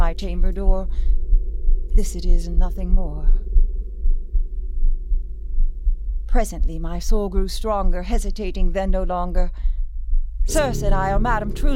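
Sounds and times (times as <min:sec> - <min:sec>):
faint hum: 0:00.0 - 0:11.7
low heartbeat: 0:00.0 - 0:11.7
speech: 0:00.2 - 0:01.2, 0:02.0 - 0:03.6, 0:06.3 - 0:09.8, 0:10.4 - 0:11.7.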